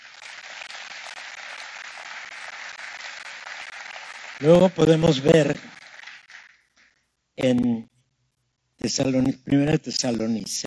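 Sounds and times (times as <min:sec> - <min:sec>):
audience applauding: 0:00.0 - 0:06.8
speech: 0:04.4 - 0:05.8, 0:07.4 - 0:07.9, 0:08.8 - 0:10.6.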